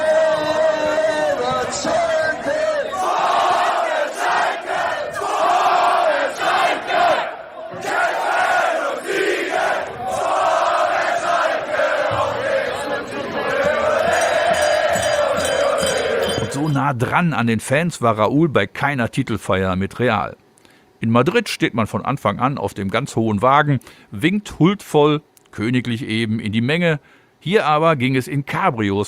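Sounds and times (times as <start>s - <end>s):
huge crowd of fans cheering and chanting: 0.0s - 16.8s
speech: 16.9s - 20.4s, 21.0s - 29.0s.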